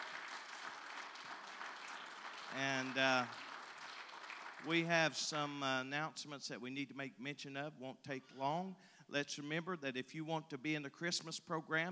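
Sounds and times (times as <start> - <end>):
audience hand clapping: 0.0 - 5.1
speech: 2.5 - 3.4, 4.6 - 11.9.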